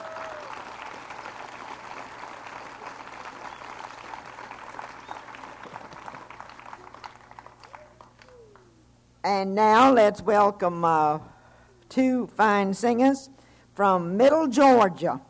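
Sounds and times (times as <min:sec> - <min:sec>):
folk festival audience applauding performers: 0:00.0 - 0:08.8
speech: 0:09.2 - 0:11.3, 0:12.0 - 0:15.2.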